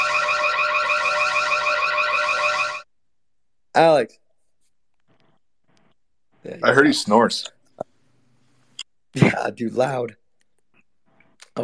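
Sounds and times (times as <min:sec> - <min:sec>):
siren: 0:00.0 - 0:02.9
speech: 0:03.8 - 0:04.2, 0:06.4 - 0:07.9, 0:09.2 - 0:10.2.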